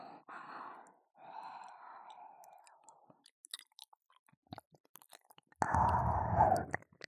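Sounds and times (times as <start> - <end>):
ear licking and ear caressing: 5.6 - 6.8.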